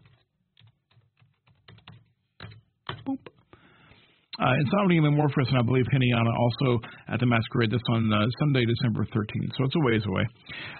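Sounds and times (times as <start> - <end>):
typing on a computer keyboard: 0.0 - 3.5
speech: 3.1 - 3.3, 4.4 - 10.7.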